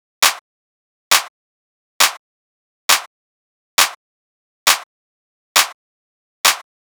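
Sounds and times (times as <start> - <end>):
techno clap loop at 135 BPM: 0.2 - 0.4, 1.1 - 1.3, 2.0 - 2.2, 4.7 - 4.9, 5.6 - 5.8, 6.4 - 6.7.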